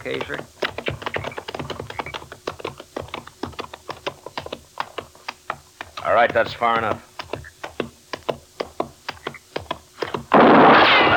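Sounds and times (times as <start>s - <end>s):
speech: 0.0s - 0.6s, 6.1s - 7.1s
gunshots in a Western standoff: 10.3s - 11.1s
loud sustained burst of noise: 10.3s - 11.1s.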